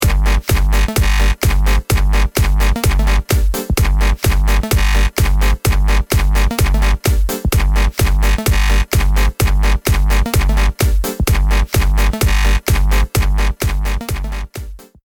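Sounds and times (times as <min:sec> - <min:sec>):
action music: 0:00.0 - 0:15.0.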